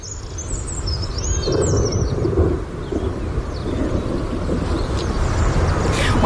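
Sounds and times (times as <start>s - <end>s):
low rumbling from a storm: 0.0s - 6.2s
red-backed shrike giving high scratchy chirps and warbles: 0.0s - 6.2s
steady roar of rain and wind: 0.0s - 6.2s.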